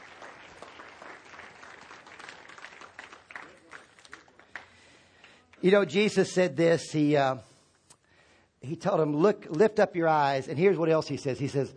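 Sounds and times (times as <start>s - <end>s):
audience clapping: 0.0s - 5.7s
speech: 5.6s - 7.5s, 8.7s - 11.7s.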